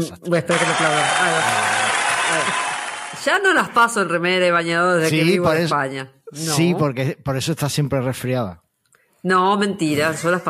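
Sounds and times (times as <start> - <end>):
speech: 0.0 - 8.6, 9.2 - 10.4
applause sound effect: 0.5 - 3.5.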